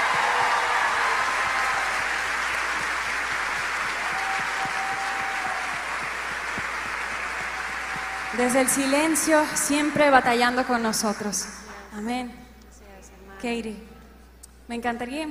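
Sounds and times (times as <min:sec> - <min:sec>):
audience applause: 0:00.0 - 0:11.0
speech: 0:08.4 - 0:12.4, 0:13.4 - 0:13.9, 0:14.7 - 0:15.3.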